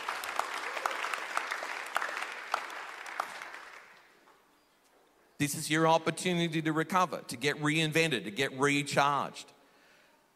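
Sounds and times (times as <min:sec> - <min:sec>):
audience hand clapping: 0:00.0 - 0:04.2
speech: 0:05.4 - 0:09.5.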